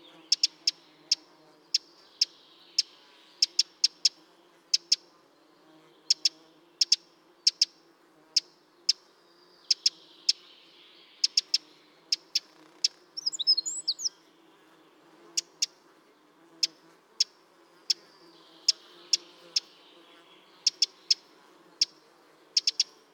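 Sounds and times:
Eurasian wren ticking calls: 0.0 - 5.1, 6.0 - 14.3, 15.2 - 15.8, 16.5 - 22.0, 22.6 - 23.1.

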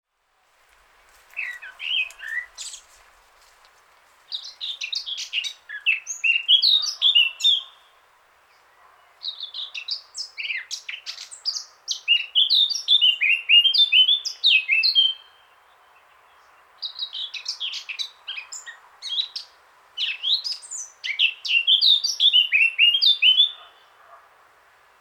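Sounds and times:
Eurasian blackcap singing: 4.4 - 7.8, 9.2 - 15.5, 16.8 - 23.8.

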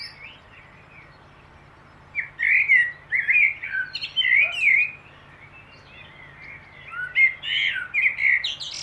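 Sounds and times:
Turdus merula common blackbird delivering fluty slurred phrases with high squeaks: 0.0 - 8.8.

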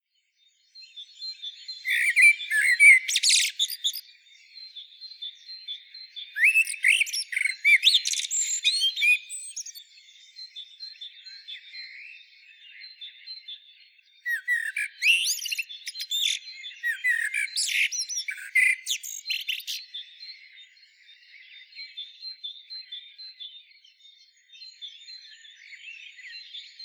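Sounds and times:
common blackbird singing: 0.4 - 26.8.

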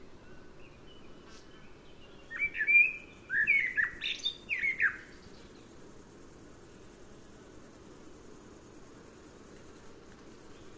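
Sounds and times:
common blackbird song: 2.3 - 5.0.

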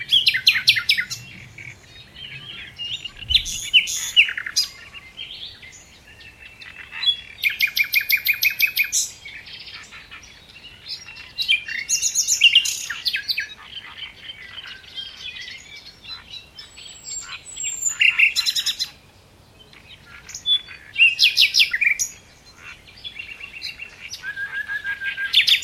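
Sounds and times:
Common nightingale song: 0.0 - 25.6.

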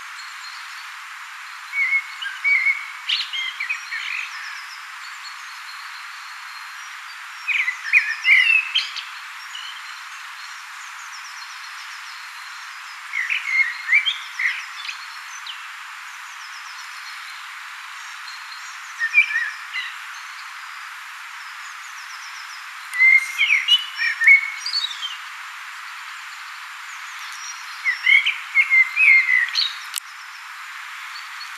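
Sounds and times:
common blackbird singing: 1.8 - 4.8, 7.5 - 9.9, 11.2 - 15.6, 18.0 - 20.5, 21.5 - 25.2, 26.9 - 30.4.

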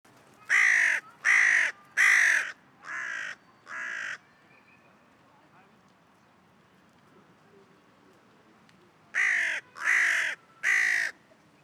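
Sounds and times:
Corvus corone calling: 0.5 - 4.2, 9.2 - 11.2.

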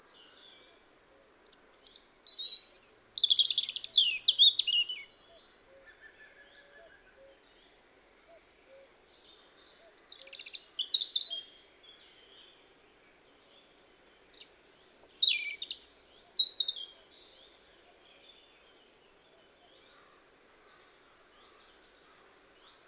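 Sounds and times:
European robin Erithacus rubecula song: 0.0 - 20.0.

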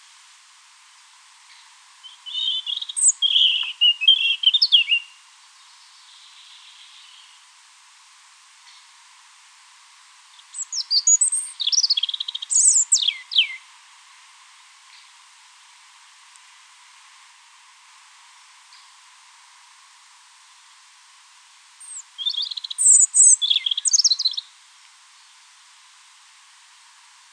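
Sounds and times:
European robin song: 1.5 - 7.5, 10.3 - 13.7, 21.8 - 24.6.

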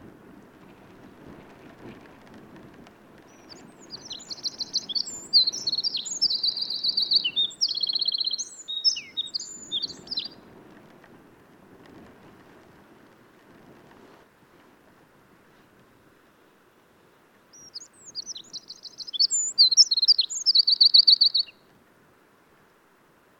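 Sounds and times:
Eurasian wren singing: 3.3 - 10.4, 17.6 - 21.6.

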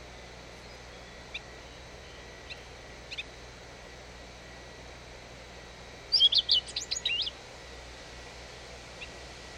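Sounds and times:
Eurasian blackcap song: 0.6 - 3.3, 6.1 - 7.4.

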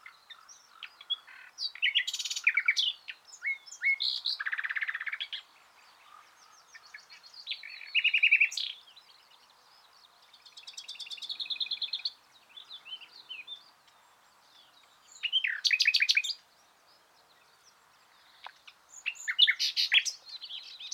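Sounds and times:
common nightingale Luscinia megarhynchos singing: 0.0 - 20.9.

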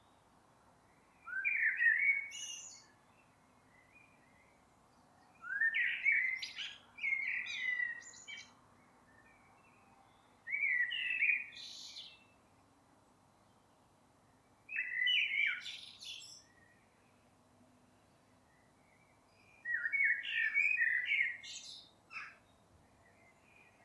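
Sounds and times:
Eurasian blackbird singing: 1.2 - 2.9, 5.2 - 12.4, 14.7 - 16.8, 18.5 - 23.8.

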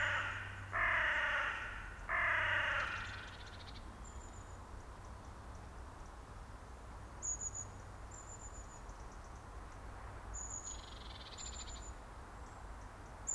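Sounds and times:
carrion crow cawing: 0.0 - 3.4.

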